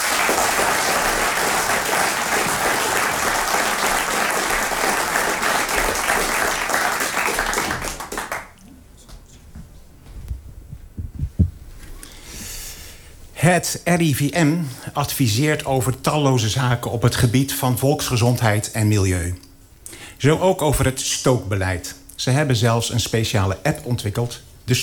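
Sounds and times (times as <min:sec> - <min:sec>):
audience applause: 0:00.0 - 0:08.6
speech: 0:13.4 - 0:19.4, 0:20.2 - 0:24.8.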